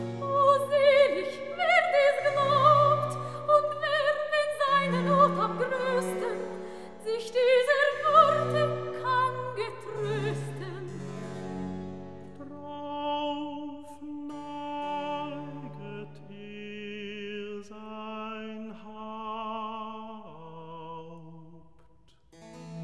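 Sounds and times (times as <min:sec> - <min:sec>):
recitative singing: 0:00.1 - 0:11.4, 0:12.2 - 0:21.7.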